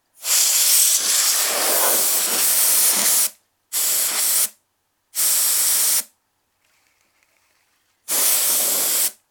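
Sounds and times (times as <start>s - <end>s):
spray: 0.2s - 4.6s, 5.2s - 6.1s, 8.1s - 9.2s.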